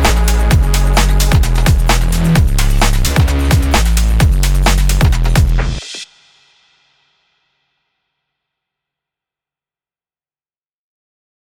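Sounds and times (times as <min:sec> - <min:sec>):
sport rushing whoosh: 0:00.0 - 0:05.8.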